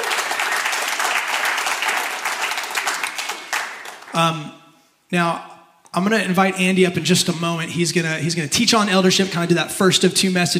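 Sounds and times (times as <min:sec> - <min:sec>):
audience applause: 0:00.0 - 0:04.2
speech: 0:04.2 - 0:10.5.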